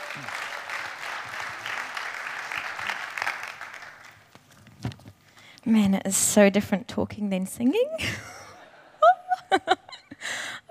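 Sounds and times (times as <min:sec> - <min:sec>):
audience applause: 0:00.0 - 0:04.3
speech: 0:00.2 - 0:00.4, 0:05.7 - 0:08.3.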